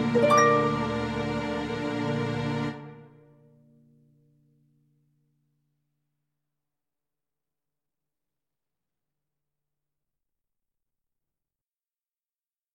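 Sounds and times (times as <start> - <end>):
saxophone melody: 0.0 - 2.0.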